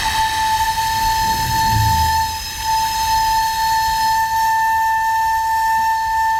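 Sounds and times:
600-year-old recorder flute playing a long high note: 0:00.0 - 0:06.3
low rumble: 0:00.6 - 0:03.0.

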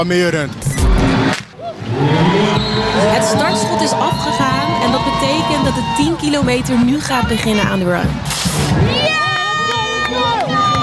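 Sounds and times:
speech: 0:00.0 - 0:09.2
crowd cheering on runners at a 10 km race: 0:01.0 - 0:10.8
whistle-like sounds: 0:02.4 - 0:04.4.

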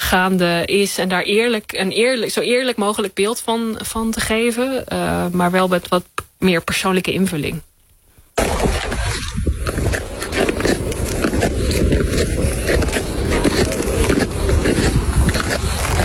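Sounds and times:
speech: 0:00.1 - 0:07.7
ice skates scraping and gliding over natural ice: 0:08.4 - 0:16.0.

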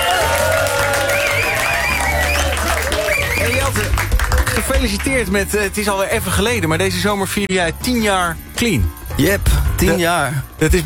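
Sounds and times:
audience applause: 0:00.0 - 0:05.2
speech: 0:04.8 - 0:10.8.

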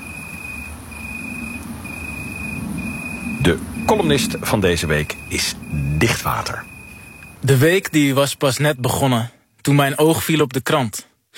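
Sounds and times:
low rumble: 0:00.0 - 0:08.8
tree cricket stridulating: 0:00.0 - 0:10.5
speech: 0:03.4 - 0:06.7, 0:07.4 - 0:11.3.

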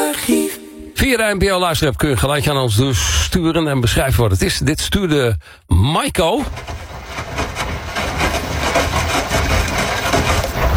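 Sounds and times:
speech: 0:00.3 - 0:06.8
rattling washing machine running: 0:06.4 - 0:10.7.

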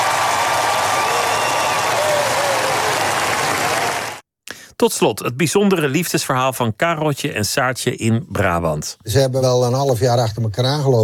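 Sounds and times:
crowd applause outside the palace: 0:00.0 - 0:04.2
speech: 0:04.8 - 0:11.0.

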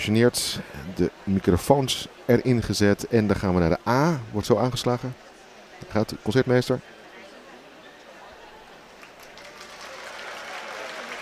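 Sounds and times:
speech: 0:00.0 - 0:07.0
large concert audience applause: 0:08.9 - 0:11.2.

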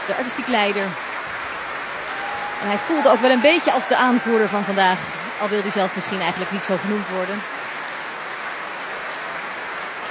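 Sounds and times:
standing ovation applause: 0:00.0 - 0:10.0
speech: 0:00.1 - 0:01.1, 0:02.6 - 0:07.6.

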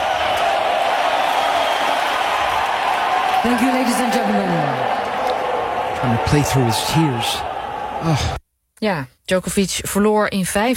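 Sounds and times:
tennis crowd cheering during a five-set match: 0:00.0 - 0:08.4
speech: 0:03.4 - 0:05.0, 0:06.0 - 0:10.7.

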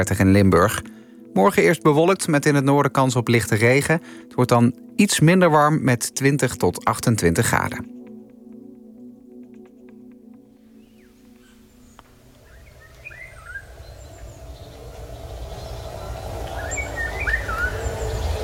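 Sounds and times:
speech: 0:00.0 - 0:08.0
low tonal drone: 0:10.7 - 0:18.4
Eurasian golden oriole calls: 0:10.8 - 0:18.4
rush: 0:11.3 - 0:18.4.

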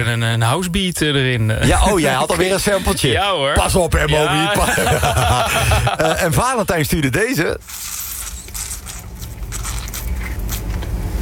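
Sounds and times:
speech: 0:00.0 - 0:08.0
laughter: 0:01.6 - 0:06.6
citrus press squeezed hard for the last juice: 0:07.6 - 0:11.2.

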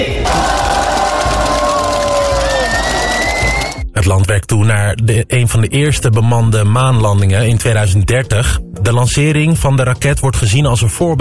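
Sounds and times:
crowd cheering and shouting at send-off: 0:00.1 - 0:03.8
speech: 0:04.1 - 0:11.1.

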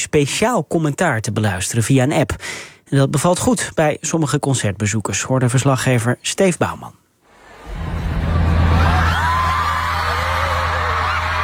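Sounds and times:
speech: 0:00.0 - 0:07.0
stadium crowd cheering at concert: 0:07.3 - 0:11.4.

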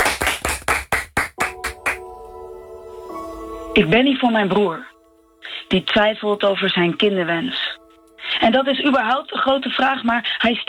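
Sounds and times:
audience clapping: 0:00.0 - 0:02.6
steady humming tone: 0:01.4 - 0:10.3
speech: 0:03.8 - 0:04.9, 0:05.7 - 0:07.6, 0:08.4 - 0:10.6.

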